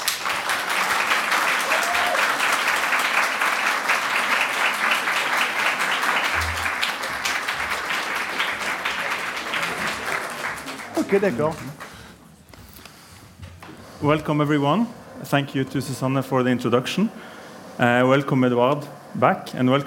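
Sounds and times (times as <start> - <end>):
audience at the Literature House in Norway applauding discussion guests: 0.0 - 12.4
speech: 11.1 - 11.8, 14.0 - 19.8.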